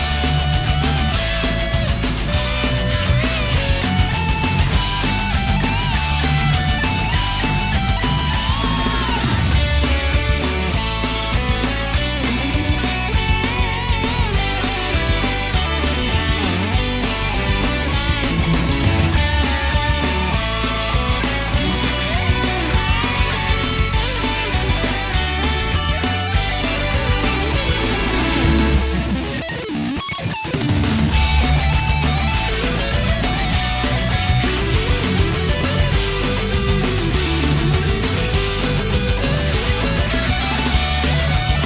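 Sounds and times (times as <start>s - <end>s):
rock cover song: 0.0s - 41.6s.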